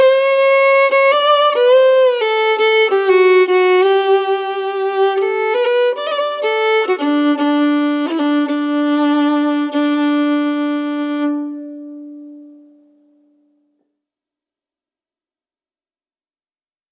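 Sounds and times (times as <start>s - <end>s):
celtic fiddle playing: 0.0s - 12.8s.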